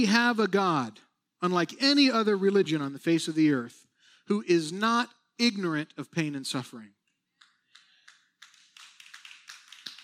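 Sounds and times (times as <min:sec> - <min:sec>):
speech: 0:00.0 - 0:07.0
single hand clap: 0:07.4 - 0:10.0.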